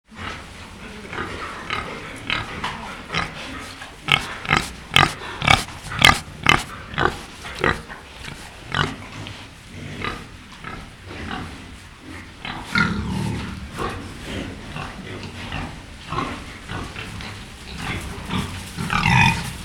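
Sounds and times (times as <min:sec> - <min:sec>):
wild boar giving short harsh calls: 0:01.4 - 0:10.3, 0:12.6 - 0:14.0, 0:14.8 - 0:19.6.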